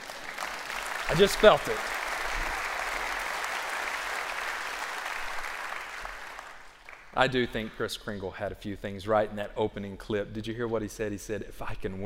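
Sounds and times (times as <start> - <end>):
audience applause: 0.0 - 7.2
speech: 1.1 - 1.9, 7.2 - 12.0.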